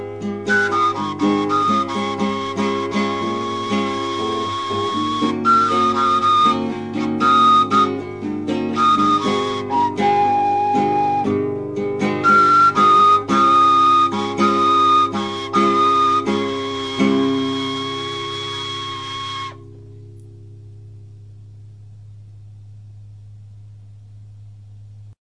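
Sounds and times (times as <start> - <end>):
guitar playing: 0.0 - 22.0.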